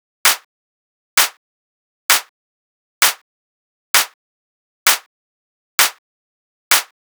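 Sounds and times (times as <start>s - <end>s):
techno clap loop at 130: 3.0s - 3.2s, 4.0s - 4.2s, 4.9s - 5.1s, 5.8s - 6.0s, 6.7s - 6.9s.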